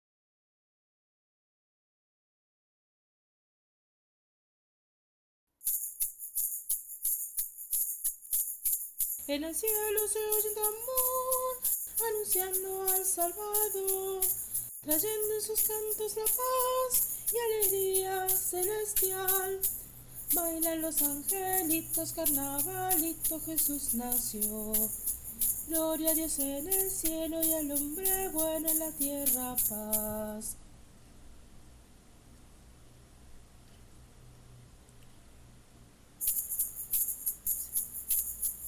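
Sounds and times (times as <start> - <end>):
shaker in carnavalito music: 5.6 - 30.6, 36.2 - 38.6
person singing carnavalito: 9.2 - 30.5.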